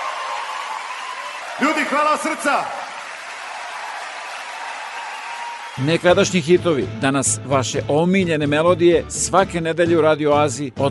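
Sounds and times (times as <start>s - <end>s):
applause for a guest and a national folk ensemble: 0.0s - 6.5s
speech: 1.6s - 2.8s, 5.8s - 10.8s.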